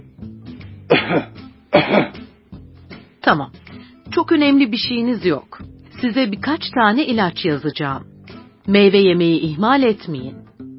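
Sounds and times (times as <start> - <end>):
patient coughing on request: 0.9 - 2.2
speech: 1.1 - 2.1, 3.3 - 3.6, 4.2 - 8.1, 8.7 - 10.4.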